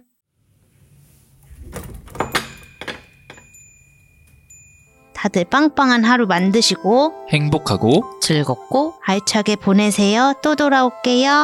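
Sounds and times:
bookshop door opening with clunks and rattles: 0:01.6 - 0:03.5
bright high shop door bell chime: 0:02.2 - 0:07.9
speech: 0:05.2 - 0:11.4.

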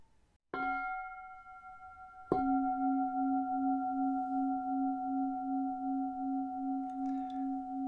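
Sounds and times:
meditation bell ringing: 0:00.6 - 0:07.8.

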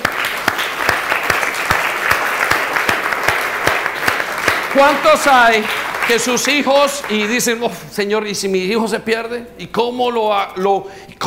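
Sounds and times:
audience applause: 0:00.0 - 0:07.6
speech: 0:04.8 - 0:11.2.

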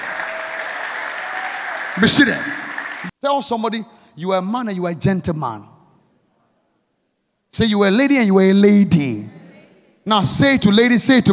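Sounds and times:
audience clapping: 0:00.0 - 0:03.1
speech: 0:02.0 - 0:02.6, 0:03.2 - 0:05.7, 0:07.5 - 0:09.4, 0:10.1 - 0:11.3.

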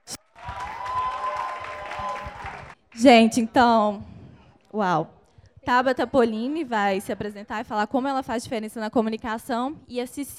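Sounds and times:
audience clapping: 0:00.4 - 0:02.8
speech: 0:03.0 - 0:04.1, 0:04.7 - 0:10.3.

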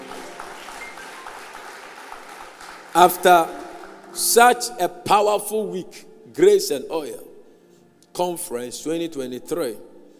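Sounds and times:
audience clapping: 0:00.0 - 0:04.7
speech: 0:02.9 - 0:03.6, 0:04.2 - 0:07.3, 0:08.2 - 0:09.9.

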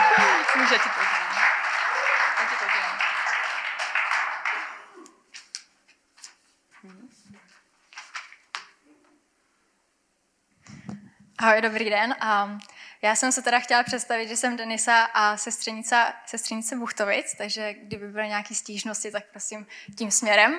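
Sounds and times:
audience applause: 0:00.0 - 0:05.1
speech: 0:00.7 - 0:01.2, 0:11.4 - 0:20.5.

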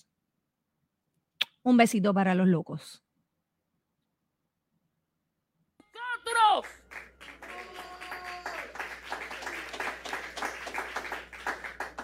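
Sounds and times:
speech: 0:01.6 - 0:03.0
crowd applauding: 0:06.4 - 0:12.0
crowd cheering and shouting: 0:07.3 - 0:08.8
rising vocal whoop: 0:07.4 - 0:08.8.

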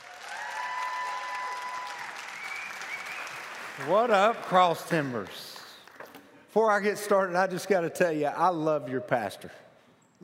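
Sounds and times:
audience applause welcoming a guest speaker: 0:00.0 - 0:06.0
speech: 0:03.8 - 0:05.5, 0:06.6 - 0:09.6.

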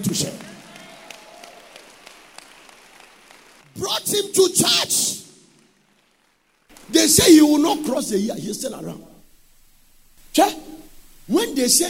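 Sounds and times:
audience clapping: 0:00.0 - 0:08.0
speech: 0:04.1 - 0:05.2, 0:07.1 - 0:09.2, 0:11.3 - 0:11.8.

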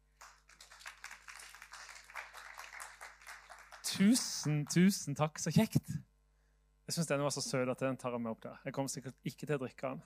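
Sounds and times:
crowd clapping: 0:00.1 - 0:05.0
speech: 0:04.0 - 0:06.1, 0:06.9 - 0:10.0.

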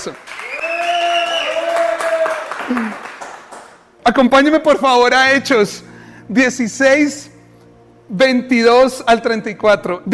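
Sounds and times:
speech: 0:00.0 - 0:00.4, 0:02.7 - 0:03.0, 0:04.0 - 0:07.3, 0:08.1 - 0:10.1
audience applause: 0:00.0 - 0:03.9.

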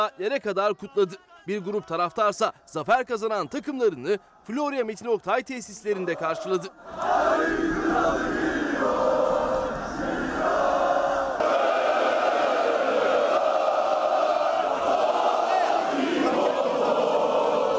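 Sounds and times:
speech: 0:00.0 - 0:09.2
football fans chanting: 0:06.1 - 0:17.7.

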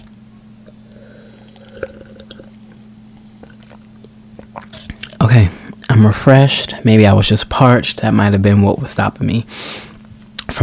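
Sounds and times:
sipping tea: 0:00.0 - 0:05.2
steady low electrical hum: 0:00.0 - 0:10.6
speech: 0:06.0 - 0:09.9.

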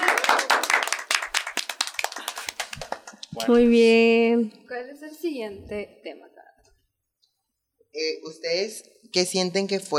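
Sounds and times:
small group clapping: 0:00.0 - 0:03.7
speech: 0:03.4 - 0:06.4, 0:07.9 - 0:09.9.

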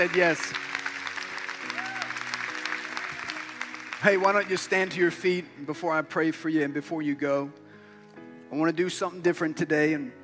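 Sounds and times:
speech: 0:00.0 - 0:00.7, 0:04.0 - 0:07.6, 0:08.5 - 0:10.2
audience clapping: 0:00.0 - 0:05.2
faint cheers: 0:01.6 - 0:03.4.

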